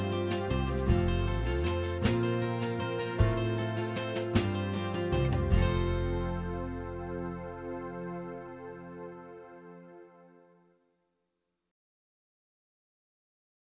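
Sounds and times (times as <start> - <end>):
instrumental music: 0.0 - 10.8.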